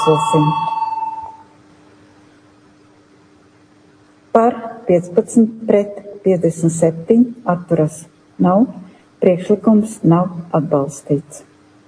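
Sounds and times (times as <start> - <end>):
speech: 0.0 - 0.7, 4.4 - 11.5
parliament voting signal tone: 0.0 - 1.5
faint low hum: 0.0 - 11.8.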